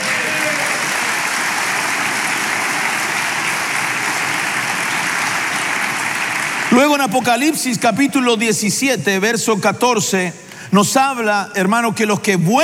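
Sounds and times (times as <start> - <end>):
audience applause: 0.0 - 7.7
speech: 6.8 - 12.6.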